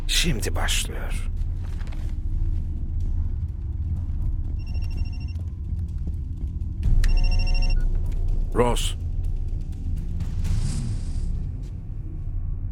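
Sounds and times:
constant low rumble: 0:00.0 - 0:12.7
speech: 0:00.1 - 0:01.4, 0:08.6 - 0:09.0
telephone ringing with an incoming call: 0:07.0 - 0:07.8.

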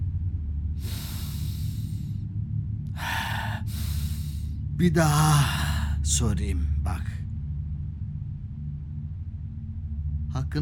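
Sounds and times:
steady low hum: 0:00.0 - 0:10.5
person drawing deep breaths: 0:00.8 - 0:02.2, 0:03.0 - 0:04.6, 0:05.2 - 0:06.0
speech: 0:04.8 - 0:07.2.

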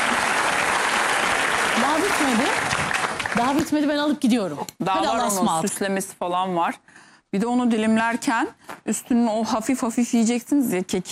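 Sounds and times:
applause: 0:00.0 - 0:03.9
speech: 0:02.0 - 0:11.1.

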